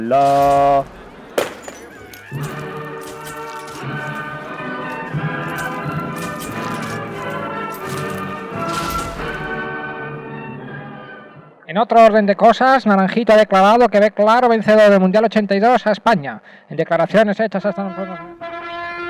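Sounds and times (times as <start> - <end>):
speech: 0.0 - 1.0, 2.3 - 2.7, 11.7 - 18.4
glass bottle smashed to inaugurate telescopes: 0.0 - 9.7.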